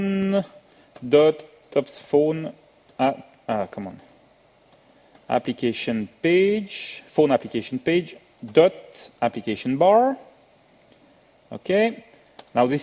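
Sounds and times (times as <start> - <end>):
speech: 0.0 - 4.1, 5.3 - 10.2, 11.5 - 12.8
typing on a computer keyboard: 2.9 - 5.3.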